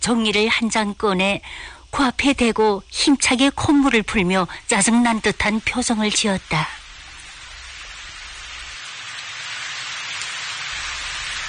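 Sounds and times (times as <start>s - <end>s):
speech: 0.0s - 6.8s
heavy rain falling: 3.5s - 11.4s.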